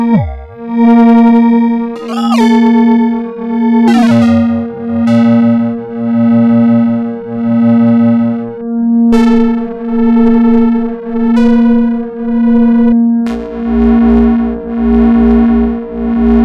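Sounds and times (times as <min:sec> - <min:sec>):
AM synth modulator: 0:00.1 - 0:01.3, 0:02.0 - 0:16.4.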